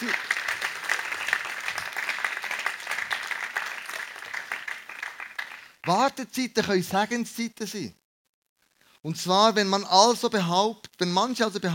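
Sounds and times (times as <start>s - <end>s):
audience applause: 0.0s - 6.0s
speech: 5.8s - 8.0s, 9.0s - 11.7s.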